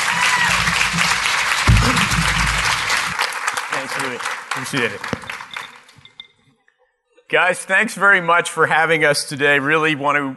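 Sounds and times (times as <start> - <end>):
warm audience applause: 0.0 - 5.9
low thump: 0.4 - 3.2
speech: 4.1 - 5.3, 7.3 - 10.3.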